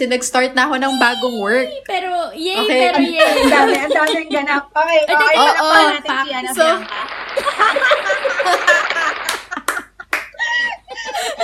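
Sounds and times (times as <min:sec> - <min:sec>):
speech: 0:00.0 - 0:09.2
laughter: 0:02.6 - 0:04.7, 0:06.6 - 0:11.4
hand clapping: 0:06.6 - 0:10.7.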